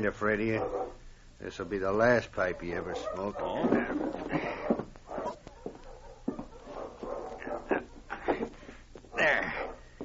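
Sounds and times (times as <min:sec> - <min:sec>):
speech: 0:00.0 - 0:04.4
hounds whining and barking: 0:00.4 - 0:10.0.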